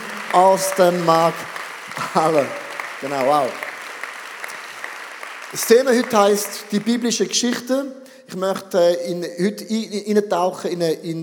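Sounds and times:
audience applause: 0.0 - 7.2
speech: 0.3 - 3.6, 5.5 - 11.2.

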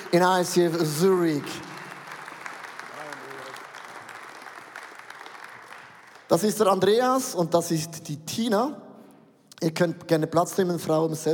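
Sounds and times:
audience applause: 0.0 - 6.4
speech: 0.1 - 1.7, 6.3 - 8.8, 9.6 - 11.3.

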